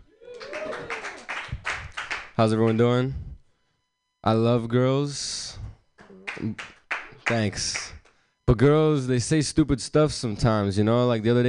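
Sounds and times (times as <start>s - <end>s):
audience clapping hands: 0.2s - 3.0s, 6.0s - 8.1s
speech: 2.4s - 3.3s, 4.2s - 5.3s, 6.4s - 6.7s, 7.3s - 7.9s, 8.5s - 11.4s.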